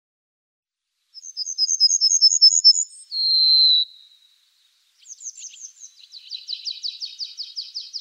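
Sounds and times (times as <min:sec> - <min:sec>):
pine bunting singing rapid high tinkling phrases: 0:01.2 - 0:04.3, 0:05.0 - 0:07.9.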